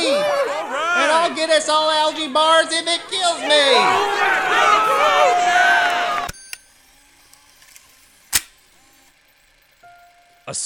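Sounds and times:
crowd cheering and clapping: 0:00.0 - 0:06.4
speech: 0:01.3 - 0:05.6, 0:10.5 - 0:10.6.

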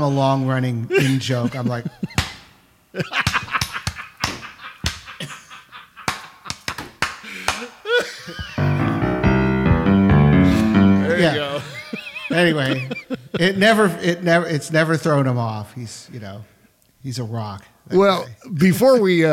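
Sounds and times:
speech: 0:00.0 - 0:02.1, 0:02.9 - 0:03.4, 0:12.4 - 0:19.3
laughter: 0:00.9 - 0:02.3, 0:03.0 - 0:08.9, 0:10.6 - 0:14.0
off-beat hand claps: 0:02.1 - 0:02.5, 0:03.2 - 0:05.3, 0:06.0 - 0:07.8
loud sustained musical tones: 0:08.6 - 0:12.0.

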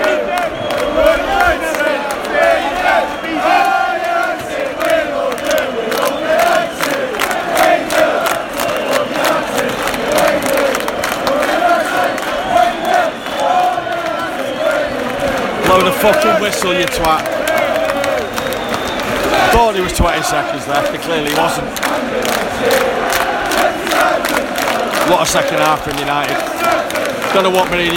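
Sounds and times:
large football crowd chanting in stadium: 0:00.0 - 0:27.9
scattered claps and shouts: 0:00.0 - 0:27.9
speech: 0:16.0 - 0:17.4, 0:19.5 - 0:22.9, 0:25.1 - 0:26.5, 0:27.3 - 0:27.9.

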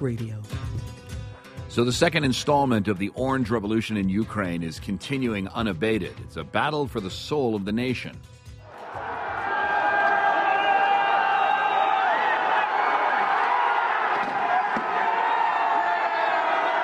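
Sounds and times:
speech: 0:00.0 - 0:00.7, 0:01.7 - 0:08.4
protesters cheering, shouting and whistling in Kiev: 0:08.7 - 0:16.8.

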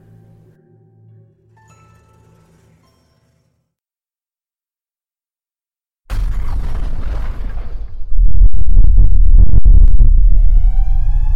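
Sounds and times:
massive explosion boom: 0:06.1 - 0:11.3.

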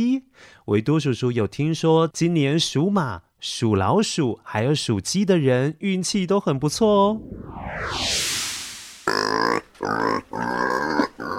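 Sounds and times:
speech: 0:00.0 - 0:08.3
pig grunting: 0:09.5 - 0:11.3.

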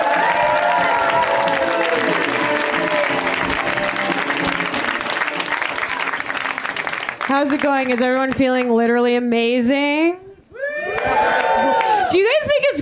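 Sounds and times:
crowd cheering voices: 0:00.0 - 0:07.2, 0:10.6 - 0:12.3
audience clapping at a live comedy show: 0:00.0 - 0:08.8, 0:10.9 - 0:12.1
speech: 0:07.3 - 0:10.2.

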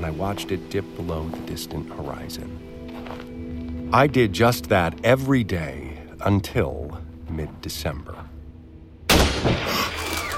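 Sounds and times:
speech: 0:00.0 - 0:03.2, 0:03.9 - 0:08.2
rifle shot: 0:09.1 - 0:10.3.

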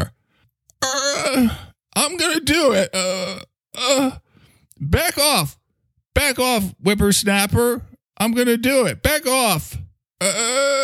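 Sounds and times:
person groaning while straining to get out of a chair: 0:00.8 - 0:01.8, 0:02.8 - 0:04.3
speech: 0:01.3 - 0:04.2, 0:04.8 - 0:05.6, 0:06.2 - 0:10.8.

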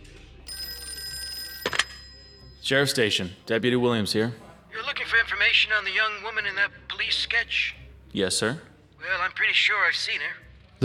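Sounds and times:
old-style telephone bell ringing: 0:00.5 - 0:03.5
speech: 0:02.7 - 0:04.4, 0:05.4 - 0:10.8.

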